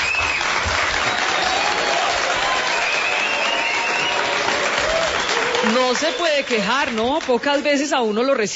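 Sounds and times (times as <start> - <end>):
faint whistles or cheers: 0.0 - 6.6
crowd applause: 0.0 - 7.7
speech: 5.6 - 8.5.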